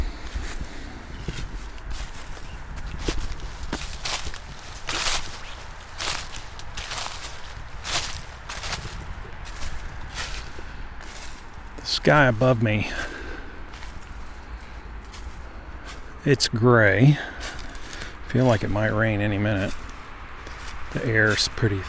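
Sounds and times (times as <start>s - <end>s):
footsteps walking outdoors: 0.0s - 21.8s
speech: 12.1s - 13.1s, 16.2s - 17.3s, 18.3s - 19.8s, 20.9s - 21.8s.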